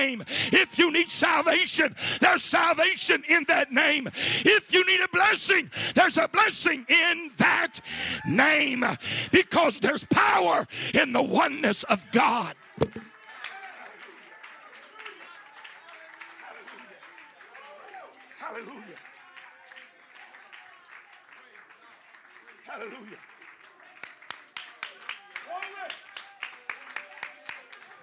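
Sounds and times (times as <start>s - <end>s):
speech: 0.0s - 13.1s, 22.8s - 23.3s
crowd clapping: 12.5s - 28.0s.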